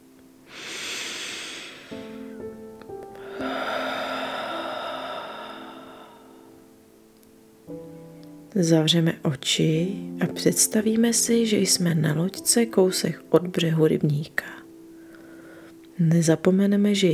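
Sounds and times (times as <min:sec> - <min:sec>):
soft sustained musical tone: 0:00.0 - 0:17.1
deep breath in and out: 0:00.5 - 0:02.6, 0:03.2 - 0:06.7, 0:14.9 - 0:15.8
speech: 0:08.6 - 0:14.6, 0:16.0 - 0:17.1.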